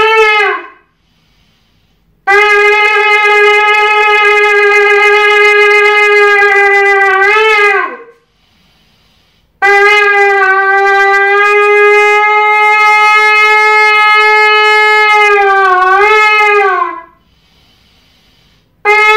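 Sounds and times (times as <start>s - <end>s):
shofar: 0.0s - 1.0s, 2.2s - 8.3s, 9.6s - 17.3s, 18.8s - 19.1s.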